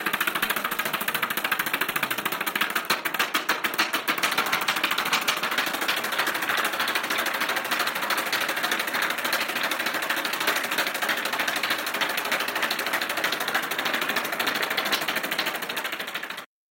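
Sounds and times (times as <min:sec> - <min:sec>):
helicopter: 0:00.0 - 0:16.5.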